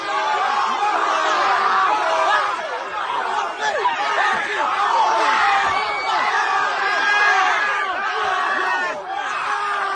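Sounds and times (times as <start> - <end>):
around a hundred young people cheering and shouting while watching a fight: 0.0 - 9.9.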